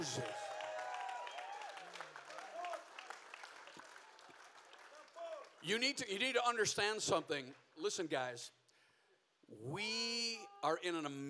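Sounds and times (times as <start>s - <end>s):
speech: 0.0s - 0.4s, 5.6s - 8.6s, 9.5s - 11.2s
scattered whoops and voices: 0.0s - 2.8s
crowd applauding: 0.0s - 5.9s.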